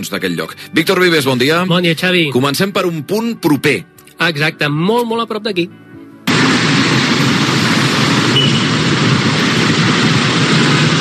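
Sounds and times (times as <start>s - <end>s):
speech: 0.0s - 5.8s
busy city square traffic at midday: 6.3s - 10.9s.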